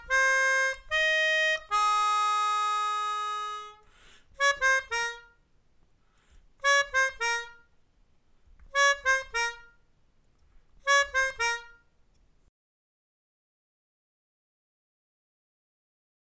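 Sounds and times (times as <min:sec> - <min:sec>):
melodica: 0:00.0 - 0:05.5, 0:06.2 - 0:07.8, 0:08.6 - 0:09.9, 0:10.8 - 0:11.9.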